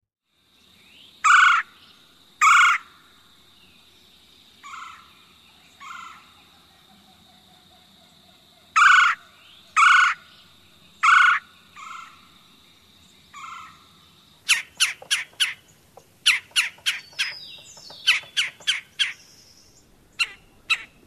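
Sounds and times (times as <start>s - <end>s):
Red-bellied Woodpecker rolling call: 1.2s - 1.7s, 2.4s - 3.0s, 4.6s - 5.1s, 5.8s - 6.4s, 8.6s - 10.4s, 11.0s - 12.4s, 13.3s - 21.0s.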